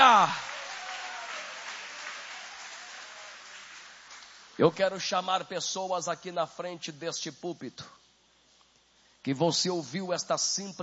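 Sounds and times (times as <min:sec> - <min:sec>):
audience applauding: 0:00.0 - 0:04.6
speech: 0:04.6 - 0:08.0, 0:09.2 - 0:10.8.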